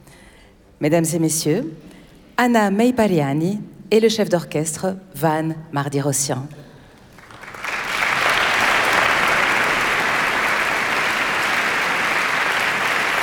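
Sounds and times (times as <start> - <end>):
speech: 0.8 - 6.7
concert audience applause: 7.0 - 13.2.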